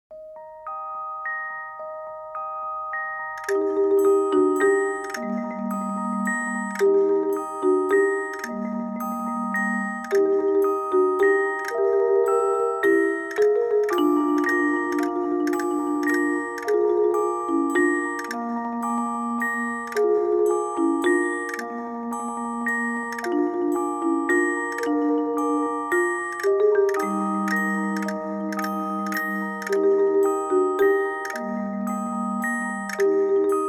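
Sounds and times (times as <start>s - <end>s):
lullaby music: 0.1s - 33.6s.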